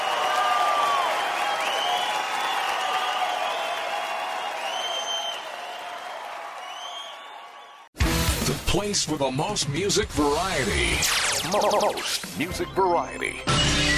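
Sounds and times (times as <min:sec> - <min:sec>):
audience applause at a live stand-up comedy show in Santa Rosa: 0:00.0 - 0:07.9
cheering voices at a stand-up comedy show in Santa Rosa: 0:00.0 - 0:07.9
speech: 0:08.5 - 0:13.8.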